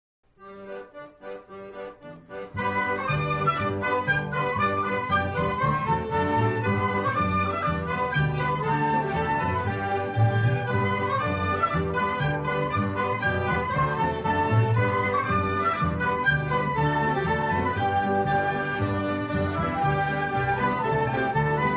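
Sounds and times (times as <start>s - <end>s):
instrumental music: 0.3s - 21.7s.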